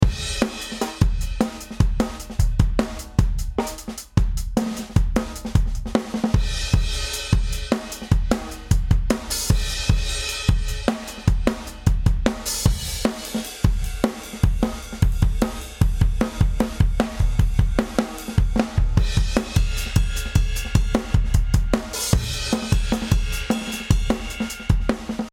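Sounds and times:
drums compressed with VC160: 0:00.0 - 0:25.3.

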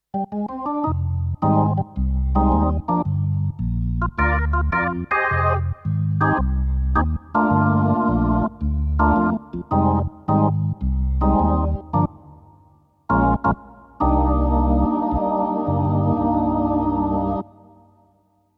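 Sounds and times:
Yamaha PSR SX600 jazz rotary organ: 0:00.2 - 0:12.2, 0:13.1 - 0:17.5.

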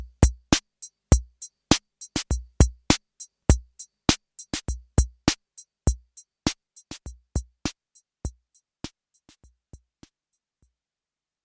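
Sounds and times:
Roland CR-78 drum machine Rock 3 beat and variations: 0:00.0 - 0:07.7.

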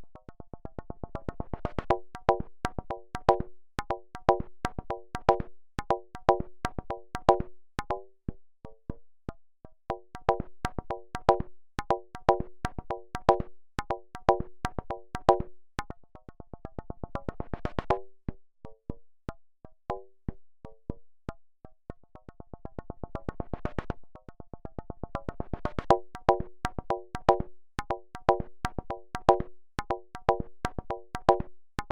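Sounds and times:
hand drums: 0:01.2 - 0:08.1, 0:09.9 - 0:15.5, 0:25.1 - 0:31.9.

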